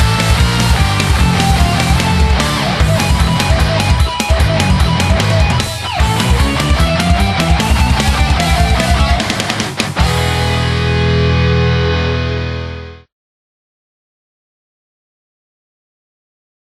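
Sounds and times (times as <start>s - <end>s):
metal cover song: 0.0s - 13.1s.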